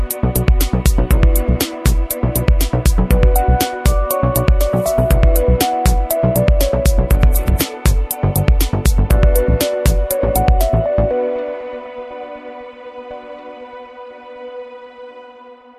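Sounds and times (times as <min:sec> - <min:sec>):
dance music: 0:00.0 - 0:12.0.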